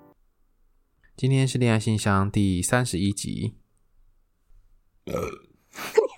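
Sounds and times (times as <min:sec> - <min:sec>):
speech: 0:01.2 - 0:03.6, 0:05.1 - 0:06.0
person burping: 0:05.1 - 0:06.1.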